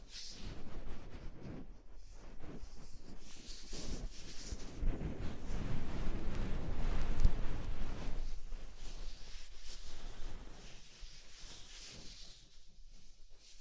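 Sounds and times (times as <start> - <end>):
soft fluffy rustling and brushing: 0.0 - 13.5.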